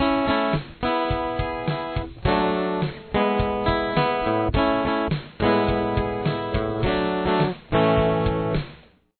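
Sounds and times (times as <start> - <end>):
outro music: 0.0 - 8.7.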